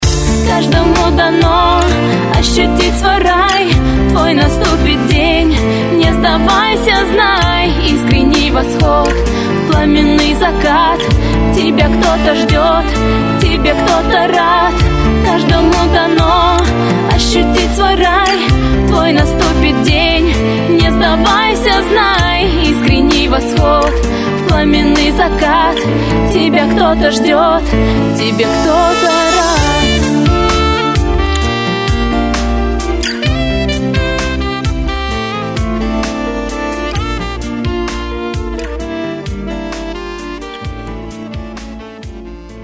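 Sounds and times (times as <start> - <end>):
synthetic saxophone: 0.0 - 42.6.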